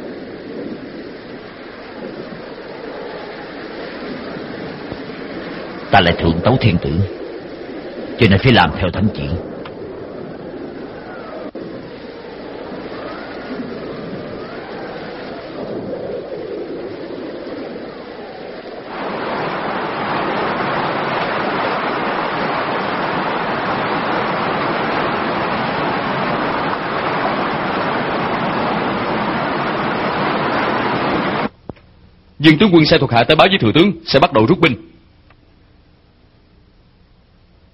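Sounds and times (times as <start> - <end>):
steady autumn rain: 0.0 - 31.6
speech: 5.9 - 7.2, 8.2 - 9.5, 32.4 - 34.9.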